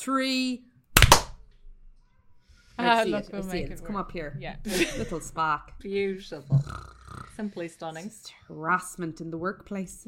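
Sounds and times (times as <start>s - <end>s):
speech: 0.0s - 0.7s, 2.8s - 10.0s
single sharp hand clap: 1.0s - 1.4s.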